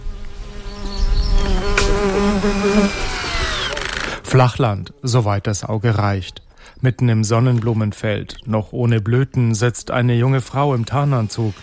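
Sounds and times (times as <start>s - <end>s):
drone buzzing in flight: 0.0s - 4.3s
speech: 2.4s - 3.1s, 4.4s - 11.6s.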